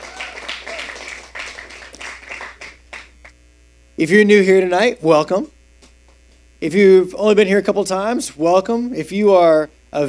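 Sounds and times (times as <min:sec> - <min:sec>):
people cheering: 0:00.0 - 0:03.2
audience applauding a church worship team: 0:00.0 - 0:03.4
speech: 0:04.0 - 0:05.6, 0:06.6 - 0:10.0.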